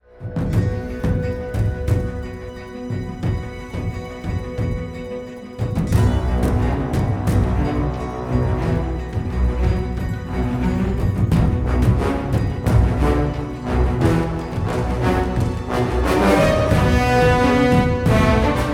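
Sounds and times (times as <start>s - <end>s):
epic ethnic music: 0.0s - 18.7s.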